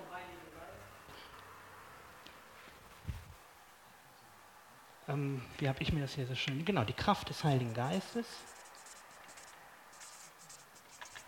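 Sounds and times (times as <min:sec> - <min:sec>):
speech: 0:05.1 - 0:08.5
pen writing in short, quick strokes: 0:08.4 - 0:11.2.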